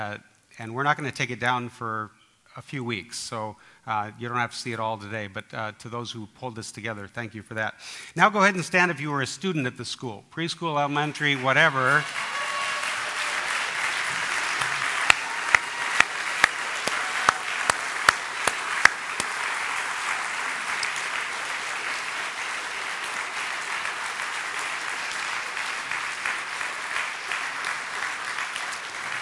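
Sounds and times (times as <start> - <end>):
speech: 0.0 - 12.4
crowd clapping: 11.0 - 29.1.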